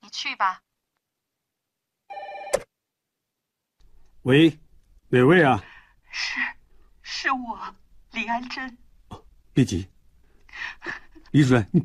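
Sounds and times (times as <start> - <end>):
speech: 0.1 - 0.7, 4.2 - 6.5, 7.2 - 8.8, 9.6 - 9.9, 10.6 - 11.8
telephone ringing: 2.1 - 2.7.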